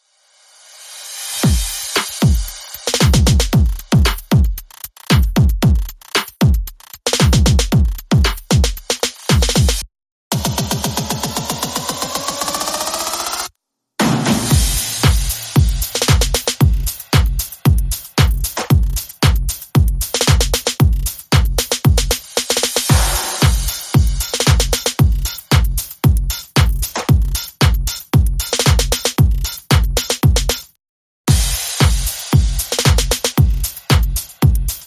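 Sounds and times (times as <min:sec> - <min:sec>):
sped up drums: 0:01.1 - 0:30.7, 0:31.3 - 0:34.8.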